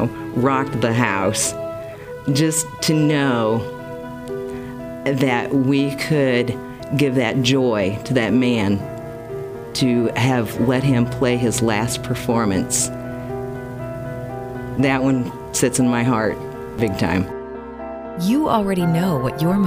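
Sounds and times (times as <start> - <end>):
piano playing: 0.0 - 19.6.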